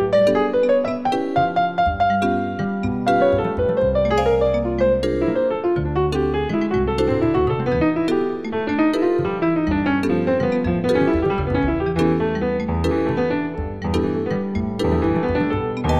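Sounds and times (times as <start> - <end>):
bass: 0.0 - 15.9
piano: 0.0 - 15.9
vibraphone: 0.0 - 15.9.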